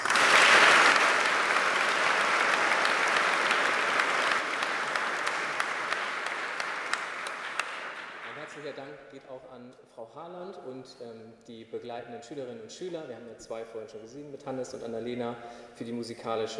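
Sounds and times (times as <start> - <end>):
audience applause: 0.0 - 8.8
speech: 9.1 - 16.5.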